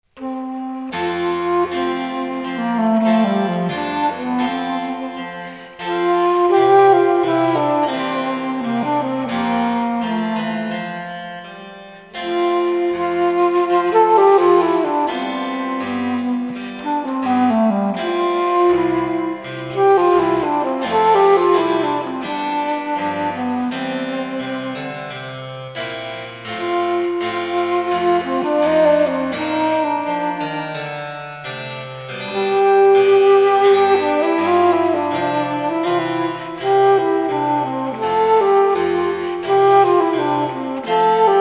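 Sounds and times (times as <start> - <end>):
Querflöte playing basso comodo: 0.1 - 41.3.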